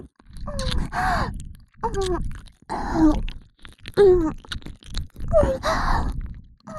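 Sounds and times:
ear licking: 0.2 - 5.3
wet slurping: 0.2 - 6.4.

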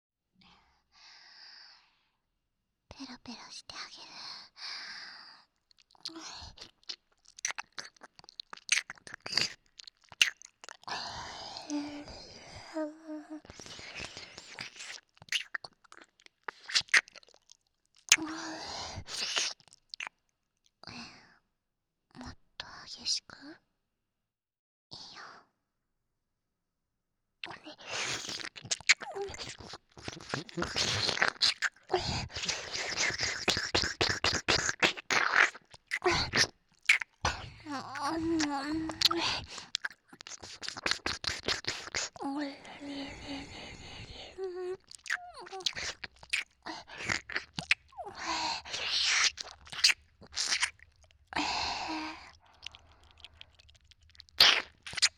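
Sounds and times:
ASMR ear licking sounds: 5.7 - 10.9, 13.5 - 18.3, 19.0 - 20.1, 27.9 - 55.1.

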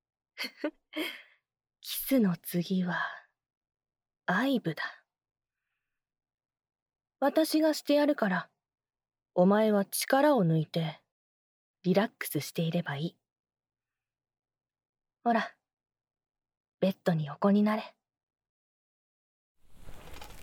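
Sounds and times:
adult woman's teasing voice: 1.9 - 3.2, 4.3 - 4.9, 7.2 - 8.4, 9.4 - 11.0, 11.9 - 13.1, 15.3 - 15.6, 16.8 - 18.0.

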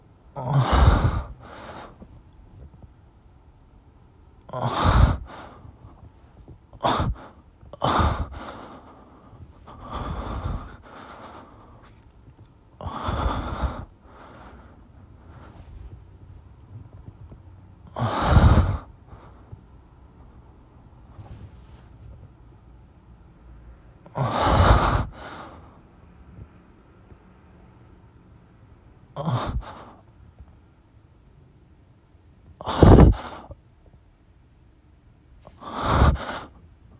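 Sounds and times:
person breathing and moaning while masturbating: 0.4 - 2.0, 4.5 - 5.9, 6.8 - 12.1, 12.8 - 14.8, 17.9 - 18.9, 24.1 - 25.6, 29.2 - 30.0, 32.6 - 33.5, 35.5 - 36.5.

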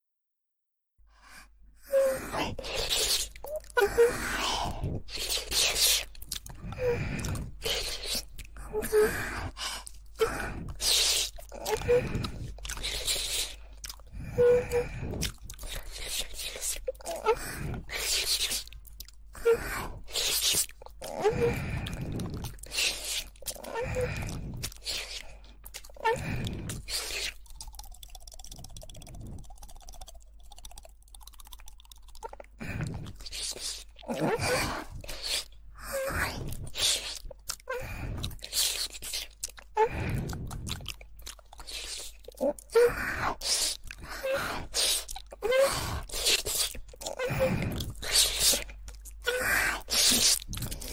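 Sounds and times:
woman licking ears with lots of saliva: 1.3 - 50.9.

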